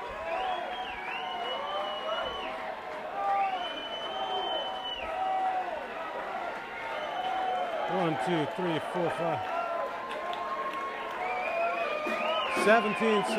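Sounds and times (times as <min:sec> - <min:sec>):
concert crowd cheering: 0:00.0 - 0:13.3
speech: 0:07.9 - 0:09.6, 0:12.6 - 0:13.3.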